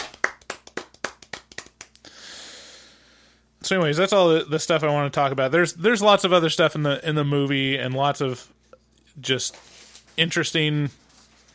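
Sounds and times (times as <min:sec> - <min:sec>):
golf clap: 0:00.0 - 0:02.1
speech: 0:03.7 - 0:08.6, 0:09.2 - 0:11.0.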